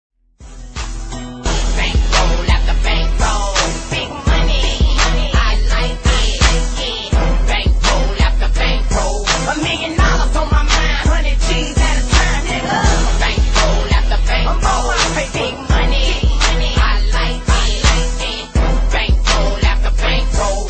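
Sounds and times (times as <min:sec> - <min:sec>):
instrumental music: 0:00.4 - 0:20.6.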